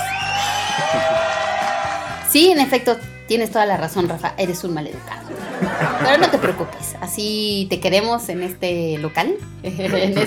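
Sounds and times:
applause sound effect: 0.0 - 2.3
laughter: 0.5 - 1.6, 5.1 - 7.0, 9.7 - 10.2
speech: 2.3 - 10.2.

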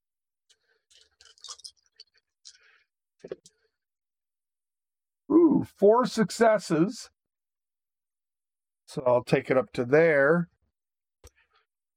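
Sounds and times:
four dice being rolled: 1.0 - 2.1
speech: 3.2 - 3.4, 5.6 - 7.2, 8.9 - 10.5.

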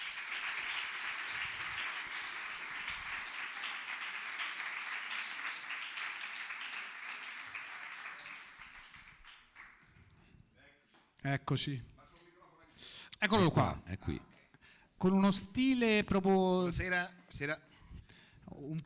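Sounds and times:
audience applause: 0.0 - 9.9
speech: 11.2 - 11.9, 13.3 - 14.3, 15.0 - 17.7.

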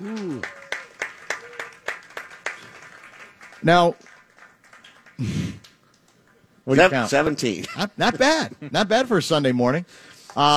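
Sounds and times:
sharp claps: 0.0 - 6.4
speech: 3.6 - 4.1, 5.2 - 5.4, 6.7 - 10.5
laughter: 6.8 - 9.2.

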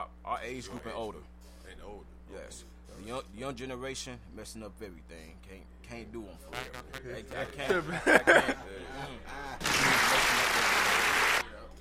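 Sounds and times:
speech: 0.4 - 11.4
laughter: 7.5 - 11.4
applause: 9.6 - 11.5.

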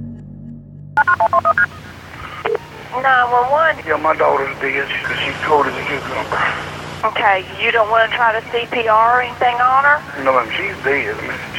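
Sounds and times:
telephone keypad dialing tones: 1.0 - 2.7
speech: 1.0 - 11.5.

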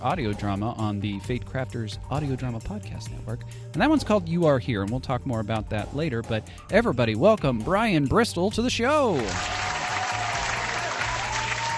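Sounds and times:
speech: 0.0 - 9.7
added applause sound effect: 9.2 - 11.7.

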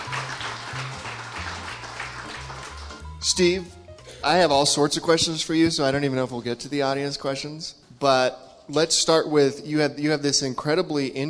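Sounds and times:
audience applause welcoming a guest: 0.0 - 3.1
low stepping musical tone: 2.9 - 6.9
speech: 3.2 - 11.2.

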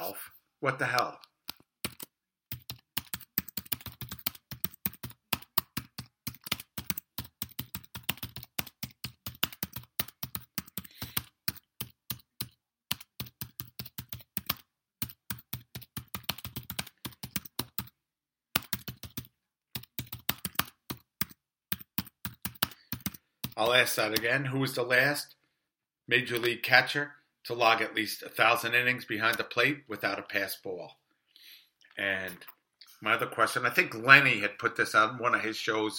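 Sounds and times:
speech: 0.1 - 1.3, 23.6 - 25.4, 26.1 - 31.0, 32.0 - 35.9
typing notes on a computer keyboard: 1.4 - 18.0, 18.6 - 24.3.

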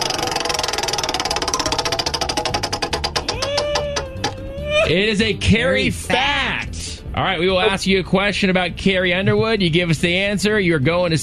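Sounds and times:
prize wheel spinning in a quiz game: 0.0 - 4.5
speech: 4.9 - 11.2.

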